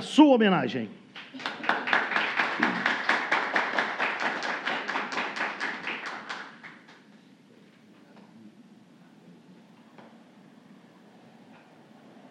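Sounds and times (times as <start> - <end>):
speech: 0.2 - 1.5
rhythmic hand claps: 1.1 - 7.0.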